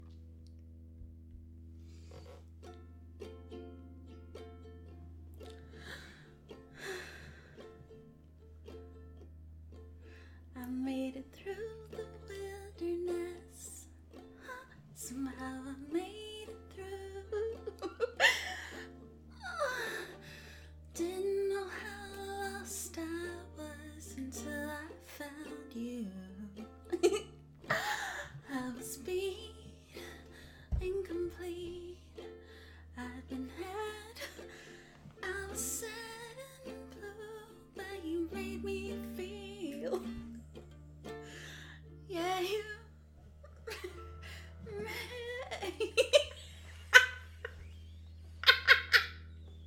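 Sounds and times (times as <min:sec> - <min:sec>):
hysterical ukulele playing: 0:00.0 - 0:49.6
laughter: 0:17.4 - 0:20.0, 0:43.4 - 0:47.6, 0:48.4 - 0:49.2.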